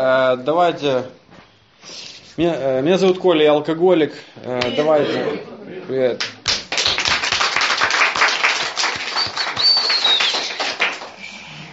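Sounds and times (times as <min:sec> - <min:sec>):
speech: 0:00.0 - 0:01.2, 0:01.8 - 0:06.4
group clapping hands: 0:06.2 - 0:11.4
faint high whistle-like tone: 0:09.1 - 0:10.6.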